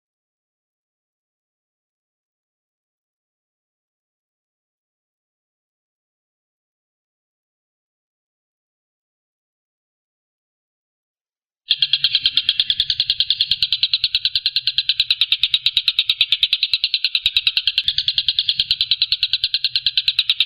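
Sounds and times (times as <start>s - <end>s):
Stork-billed kingfisher rattling: 11.7s - 20.4s.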